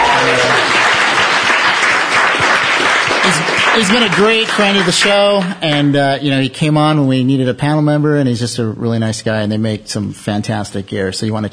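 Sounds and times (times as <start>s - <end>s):
applause: 0.0s - 5.9s
speech: 3.8s - 11.5s.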